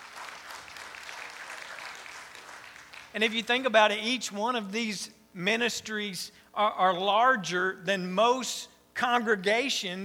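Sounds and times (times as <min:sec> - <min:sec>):
audience applause: 0:00.0 - 0:03.2
speech: 0:03.1 - 0:10.0.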